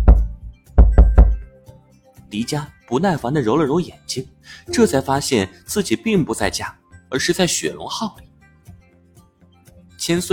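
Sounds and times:
knocking on a door: 0:00.0 - 0:01.4
speech: 0:02.3 - 0:08.3, 0:10.0 - 0:10.3.

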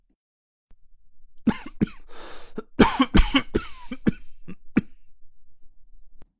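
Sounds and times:
violent coughing: 0:01.5 - 0:05.1.

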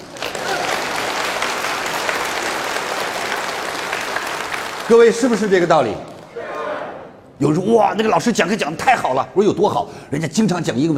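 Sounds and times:
crowd applauding: 0:00.0 - 0:06.0
speech: 0:04.9 - 0:06.1, 0:07.4 - 0:10.9.

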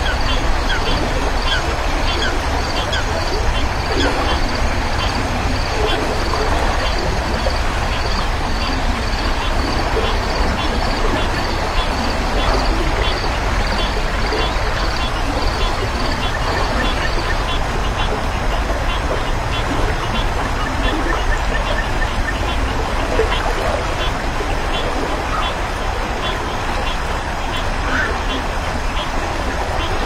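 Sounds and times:
high rapid pulsing insect trill: 0:00.0 - 0:18.1
frogs calling beside a quiet river: 0:00.0 - 0:30.0
low rushing murmur of a quiet river: 0:00.0 - 0:30.0.

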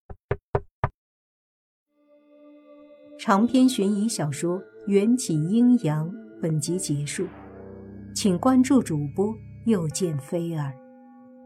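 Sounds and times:
slow knocking on a door: 0:00.1 - 0:01.0
soft sustained tonal hum: 0:02.2 - 0:11.4
speech: 0:03.2 - 0:07.4, 0:08.2 - 0:10.8.

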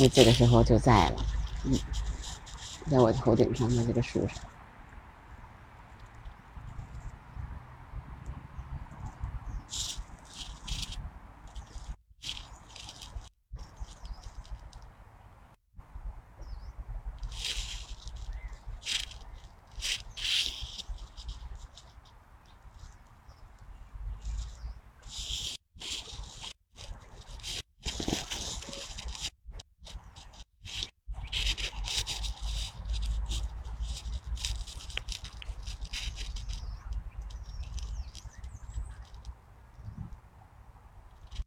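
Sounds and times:
speech: 0:00.0 - 0:02.1, 0:02.9 - 0:04.5
Plain laughingthrush scratching ground litter while foraging: 0:00.0 - 0:04.6, 0:09.5 - 0:14.7, 0:17.2 - 0:23.0, 0:24.2 - 0:39.3.

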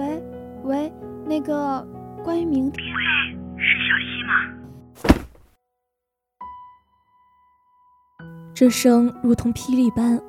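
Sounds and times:
speech: 0:00.7 - 0:05.2, 0:08.6 - 0:10.2
mobile phone dropping onto the floor: 0:05.0 - 0:05.5.

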